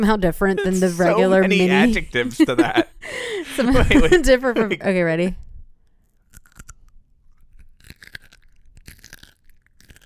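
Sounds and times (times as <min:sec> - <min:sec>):
speech: 0:00.0 - 0:05.4
laughter: 0:00.5 - 0:04.8
wet chewing of pickle: 0:05.8 - 0:10.0
crunching bites into a petite snack cruncher kosher dill pickle: 0:05.9 - 0:10.0.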